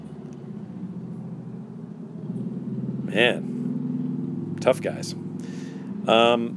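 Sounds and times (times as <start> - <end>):
group of motorcycles passing: 0.0 - 6.5
speech: 3.1 - 3.5, 4.6 - 6.5.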